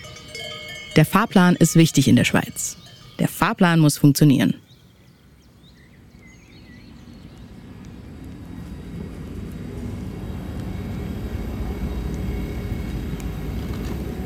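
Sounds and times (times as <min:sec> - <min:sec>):
trains arriving at a railway station in Basel: 0:00.0 - 0:04.6, 0:07.6 - 0:14.2
speech: 0:01.0 - 0:04.6.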